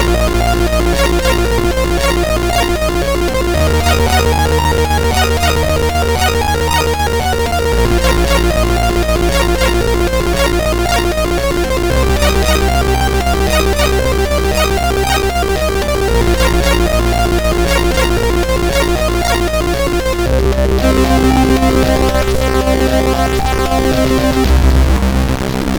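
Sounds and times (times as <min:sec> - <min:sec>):
synthesized drums from a SID chip: 0:00.0 - 0:25.7.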